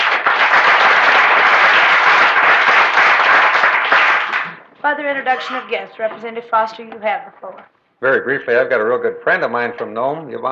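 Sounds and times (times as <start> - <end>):
audience applauding in a legislature gallery: 0.0 - 4.7
speech: 4.9 - 10.5.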